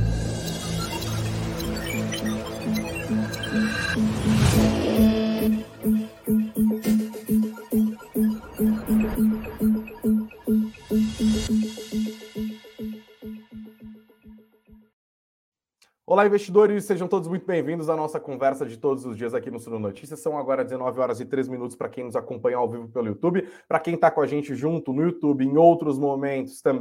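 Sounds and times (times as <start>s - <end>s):
opening jingle for a live Brazilian stock-market news programme: 0.0s - 14.6s
speech: 16.2s - 26.7s.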